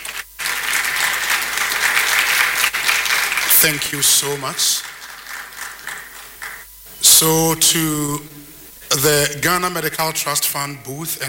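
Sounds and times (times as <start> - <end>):
crowd applause: 0.0 - 8.1
speech: 3.6 - 4.9, 7.2 - 11.2.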